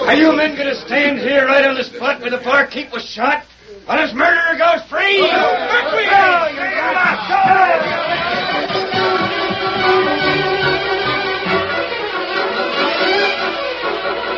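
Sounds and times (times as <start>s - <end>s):
angry crowd chattering in a cafe: 0.0s - 2.8s, 5.1s - 14.3s
speech: 0.1s - 10.1s.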